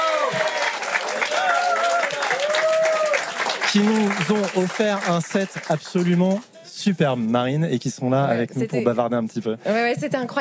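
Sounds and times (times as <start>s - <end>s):
audience applause for a jazz band: 0.0s - 6.4s
speech: 3.7s - 10.3s.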